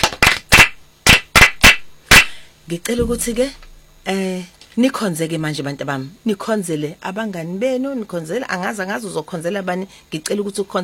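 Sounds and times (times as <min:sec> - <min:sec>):
hands clapping for a teacher at a church gathering: 0:00.0 - 0:02.4
speech: 0:02.7 - 0:10.8.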